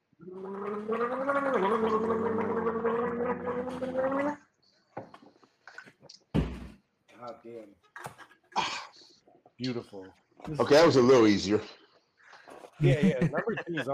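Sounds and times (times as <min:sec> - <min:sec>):
speech: 0:00.2 - 0:02.7, 0:03.4 - 0:04.4, 0:07.2 - 0:08.1, 0:09.6 - 0:11.8, 0:12.8 - 0:13.9
person gargling a shot of drink: 0:00.2 - 0:04.5
laughter: 0:12.8 - 0:13.9.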